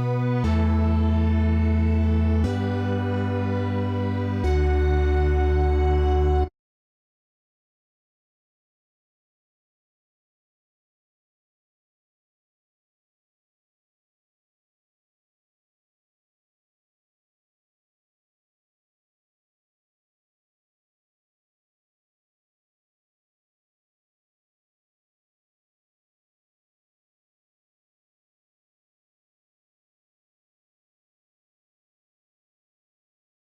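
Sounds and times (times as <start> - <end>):
instrumental music: 0.0 - 6.5.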